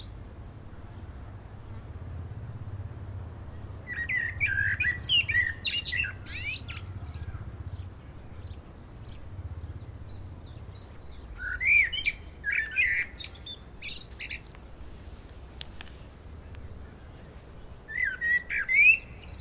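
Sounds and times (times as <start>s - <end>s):
common blackbird Turdus merula singing: 3.5s - 14.5s, 16.4s - 19.3s.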